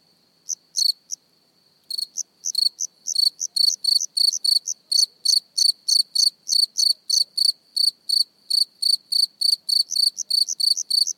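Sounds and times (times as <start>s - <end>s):
cricket chirping close up: 0.0s - 11.1s.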